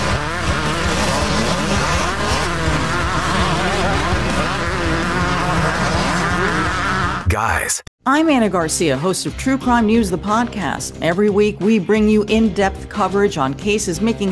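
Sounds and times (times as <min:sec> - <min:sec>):
racing motorcycle engines roaring: 0:00.0 - 0:07.2
speech: 0:07.4 - 0:14.3.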